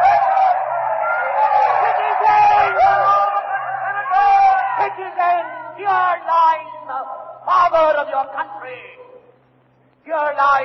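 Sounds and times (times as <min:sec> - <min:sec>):
frenzied crowd shouting: 0:00.0 - 0:06.9
speech: 0:07.7 - 0:09.0, 0:10.1 - 0:10.6.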